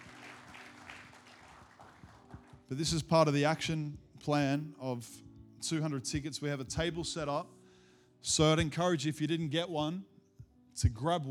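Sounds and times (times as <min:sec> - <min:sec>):
audience applause: 0:00.0 - 0:02.7
speech: 0:02.7 - 0:07.6, 0:08.2 - 0:10.1, 0:10.8 - 0:11.3.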